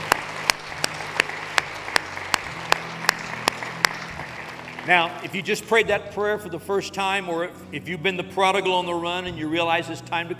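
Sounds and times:
church congregation clapping to welcome new believers: 0.0 - 5.7
speech: 4.8 - 10.3.

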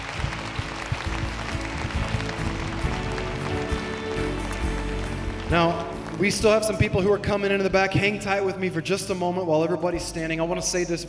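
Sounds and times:
church congregation clapping in welcome: 0.0 - 7.7
speech: 5.5 - 11.0.

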